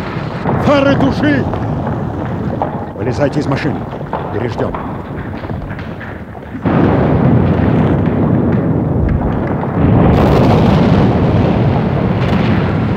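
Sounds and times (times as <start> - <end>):
explosions during an air raid: 0.0 - 12.9
speech: 0.7 - 1.6, 3.0 - 4.8.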